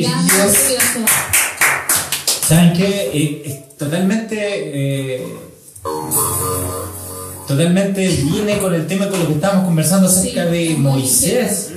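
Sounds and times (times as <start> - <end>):
speech: 0.0 - 1.4, 2.5 - 6.9, 7.5 - 11.7
applause: 0.2 - 2.6.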